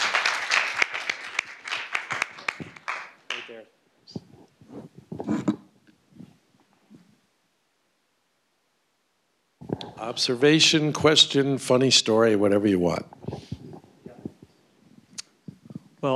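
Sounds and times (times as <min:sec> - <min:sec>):
audience clapping: 0:00.0 - 0:03.7
speech: 0:10.0 - 0:13.2.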